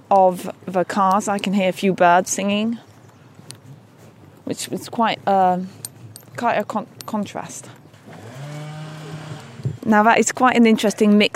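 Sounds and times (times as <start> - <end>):
speech: 0.1 - 2.9, 4.5 - 7.8, 9.9 - 11.3
distant chainsaw: 8.0 - 9.9.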